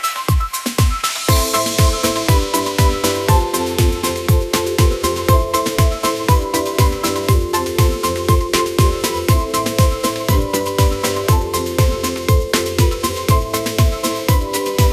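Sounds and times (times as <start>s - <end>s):
upbeat pop melody: 0.0s - 14.9s.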